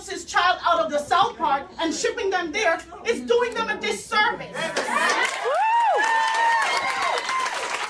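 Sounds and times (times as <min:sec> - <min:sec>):
speech: 0:00.3 - 0:04.8
meeting audience applause: 0:04.7 - 0:07.8
voices whooping: 0:04.8 - 0:07.8.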